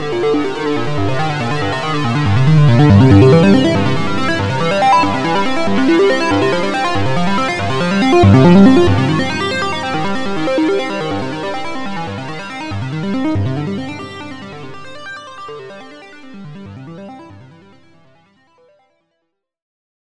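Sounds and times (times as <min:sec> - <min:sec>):
OB-X synthesizer arpeggio: 0:01.0 - 0:15.0.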